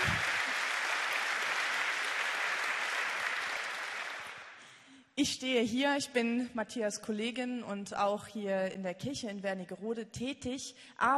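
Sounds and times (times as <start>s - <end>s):
audience applause: 0.0s - 4.6s
speech: 5.2s - 11.1s.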